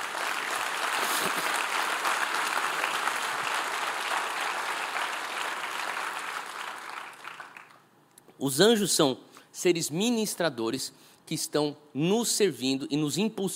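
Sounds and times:
audience applause: 0.0s - 7.8s
speech: 8.4s - 13.5s.

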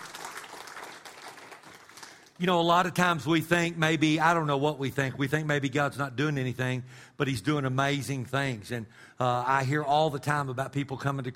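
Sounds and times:
audience clapping hands: 0.0s - 2.4s
speech: 2.4s - 11.3s.

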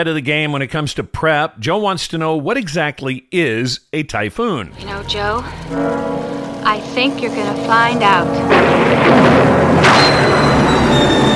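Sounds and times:
speech: 0.0s - 11.3s
lightning strike thunder boom: 4.8s - 11.3s.

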